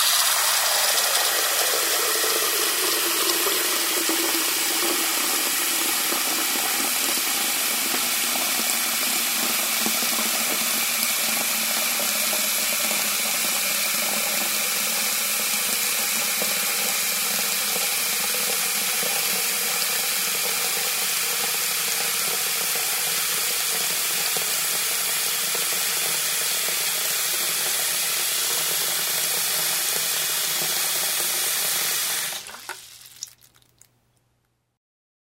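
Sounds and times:
water flowing into a porcelain sink: 0.0 - 33.9.

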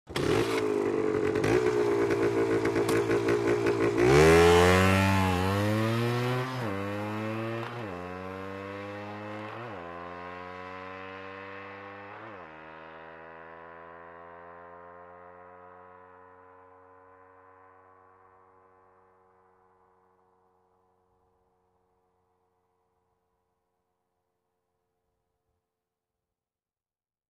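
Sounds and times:
motorcycle starting, idling and driving off quickly: 0.1 - 19.6.

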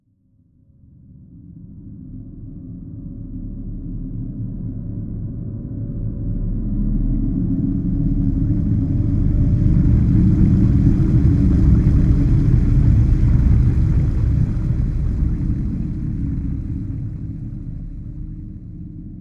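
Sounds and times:
submarine sailing underwater: 6.8 - 19.1.

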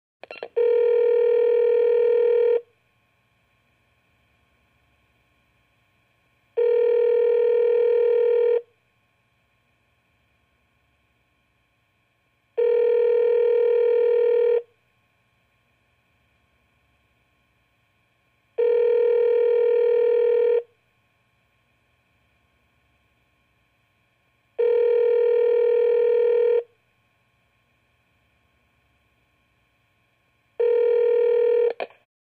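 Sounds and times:
phone call sound: 0.3 - 2.7, 6.6 - 8.7, 12.6 - 14.7, 18.6 - 20.7, 24.6 - 26.7, 30.6 - 31.9.

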